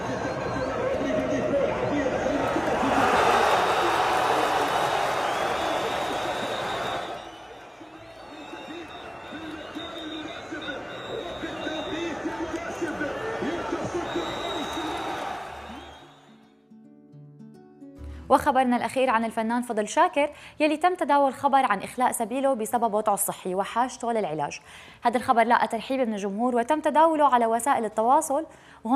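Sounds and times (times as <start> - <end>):
football fans in Gaza cheering and chanting: 0.0 - 16.3
speech: 18.4 - 28.9.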